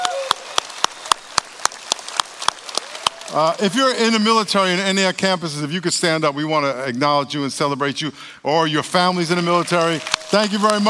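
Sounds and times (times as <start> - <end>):
audience applause: 0.0 - 4.2, 9.5 - 10.8
speech: 3.3 - 10.8.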